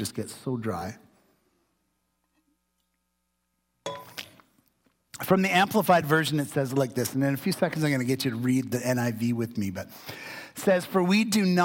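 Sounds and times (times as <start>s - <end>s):
speech: 0.0s - 1.1s, 5.2s - 11.6s
glass clinking against a hard surface: 3.8s - 4.2s.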